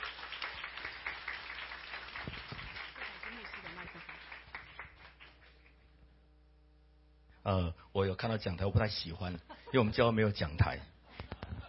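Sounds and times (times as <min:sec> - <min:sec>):
audience clapping: 0:00.0 - 0:05.8
speech: 0:07.4 - 0:10.9.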